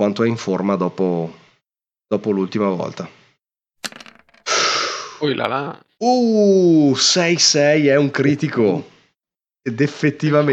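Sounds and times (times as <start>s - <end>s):
speech: 0.0s - 1.4s, 2.1s - 3.2s, 5.2s - 8.9s, 9.6s - 10.5s
four dice being rolled: 3.8s - 4.6s.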